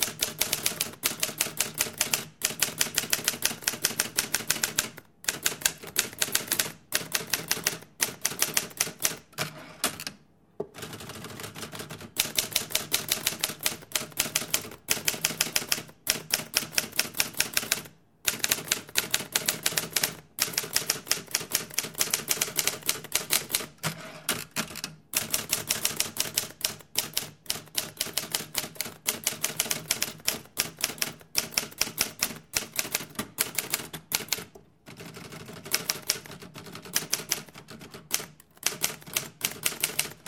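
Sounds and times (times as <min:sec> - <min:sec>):
typewriter typing: 0:00.0 - 0:10.2, 0:10.8 - 0:40.2.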